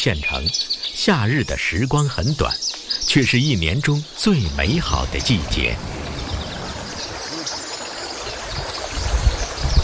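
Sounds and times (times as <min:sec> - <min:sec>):
speech: 0:00.0 - 0:06.0
clear river water flowing: 0:04.6 - 0:09.7.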